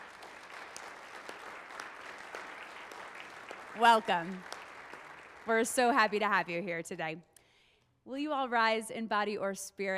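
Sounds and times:
crowd applauding: 0.0s - 6.3s
speech: 3.8s - 4.5s, 5.5s - 7.3s, 8.0s - 9.9s.

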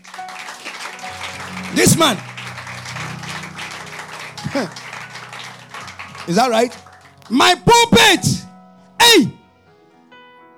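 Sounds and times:
audience clapping: 0.0s - 8.4s
speech: 1.8s - 2.3s, 4.6s - 4.8s, 6.3s - 8.4s, 9.1s - 9.4s.

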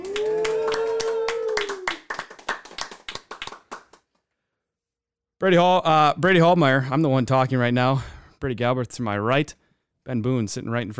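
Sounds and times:
sustained vocal cheer: 0.0s - 2.2s
small studio audience clapping: 0.0s - 4.2s
speech: 5.4s - 10.9s.

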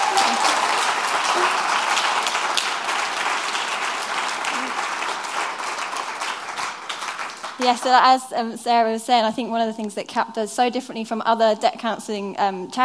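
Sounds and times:
audience applause: 0.0s - 8.0s
speech: 7.6s - 12.8s.

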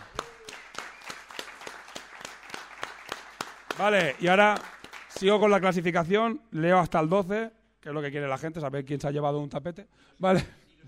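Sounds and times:
applause: 0.0s - 6.0s
speech: 3.8s - 10.8s.

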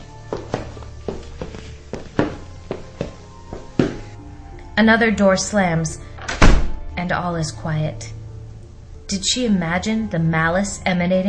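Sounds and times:
footsteps approaching: 0.0s - 4.2s
speech: 4.8s - 6.1s, 7.1s - 8.2s, 9.1s - 11.2s.

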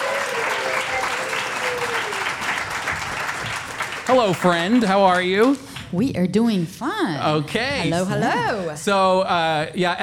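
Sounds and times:
faint cheering: 0.0s - 2.6s
crowd applause: 0.0s - 5.6s
speech: 4.1s - 10.0s.

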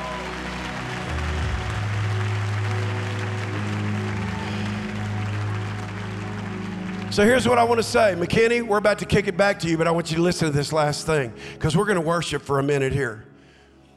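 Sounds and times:
audience applause and clapping: 0.0s - 8.8s
speech: 7.2s - 13.3s.

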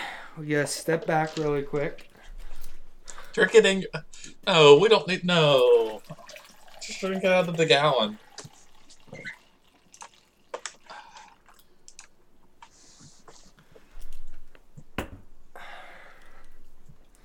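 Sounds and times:
speech: 0.4s - 2.1s, 3.4s - 6.3s, 6.9s - 8.2s
sweet tea being poured: 5.4s - 11.6s.

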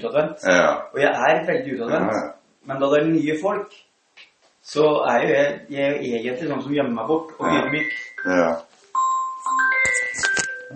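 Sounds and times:
speech: 0.0s - 3.9s, 4.6s - 8.7s
phone ringing: 7.4s - 10.7s.

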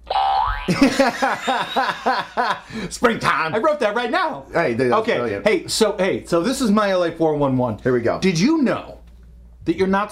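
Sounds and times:
cartoon spring boing sound effect: 0.0s - 0.7s
laughter: 0.7s - 2.7s
speech: 0.7s - 9.0s, 9.6s - 10.1s.

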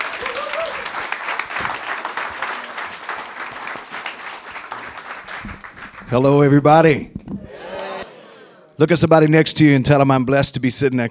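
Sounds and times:
audience applauding a reverend as guest speaker: 0.0s - 6.7s, 7.5s - 8.6s
speech: 6.1s - 7.2s, 8.8s - 11.0s.

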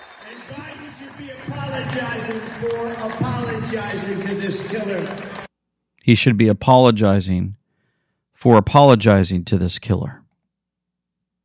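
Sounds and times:
crowd cheering and applauding: 0.0s - 5.5s
speech: 0.3s - 5.4s, 6.1s - 7.6s, 8.4s - 10.2s.

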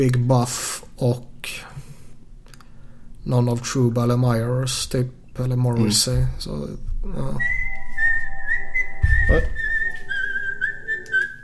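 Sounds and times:
speech: 0.0s - 1.8s, 3.2s - 7.6s, 9.3s - 9.6s
mobile phone ringtone: 7.7s - 11.0s
low thump: 9.0s - 9.7s.

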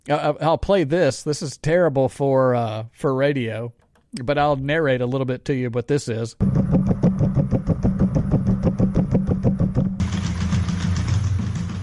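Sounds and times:
speech: 0.0s - 7.0s
robot dog footsteps: 6.4s - 10.1s
steady whirring drone with low tones: 6.4s - 10.6s
robot dog buzzing motor hum: 6.4s - 10.8s.

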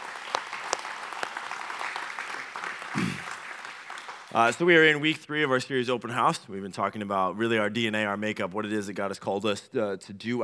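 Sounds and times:
audience applause: 0.0s - 4.7s
speech: 4.4s - 10.4s.

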